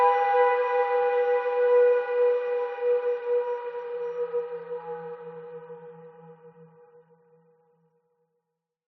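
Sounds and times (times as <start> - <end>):
dark mysterious airy whistling horror drone: 0.0 - 6.2.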